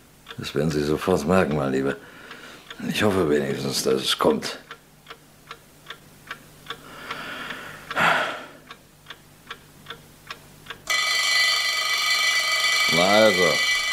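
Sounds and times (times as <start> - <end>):
speech: 0.4 - 2.2, 2.8 - 4.6
alarm clock on a bedside table: 10.9 - 13.9.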